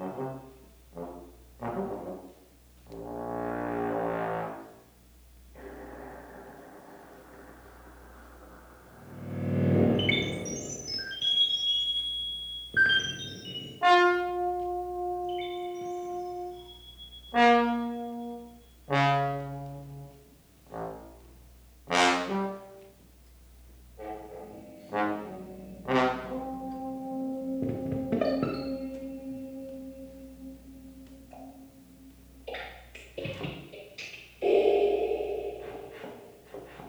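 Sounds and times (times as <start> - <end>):
trombone: 0.0 - 8.3, 13.0 - 23.0, 23.8 - 33.2
tape playback: 7.2 - 13.8, 27.5 - 36.8.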